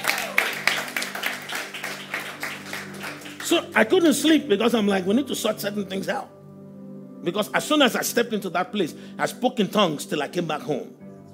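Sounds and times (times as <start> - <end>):
audience clapping: 0.0 - 3.9
speech: 3.5 - 6.4, 7.2 - 11.0.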